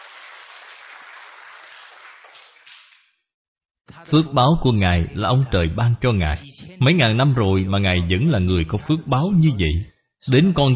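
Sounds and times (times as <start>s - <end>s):
audience applause: 0.0s - 3.0s
speech: 4.0s - 10.7s.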